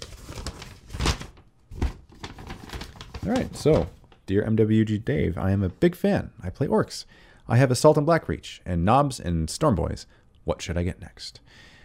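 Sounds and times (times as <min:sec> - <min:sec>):
paper envelope being ripped open: 0:00.0 - 0:04.1
speech: 0:03.2 - 0:11.7.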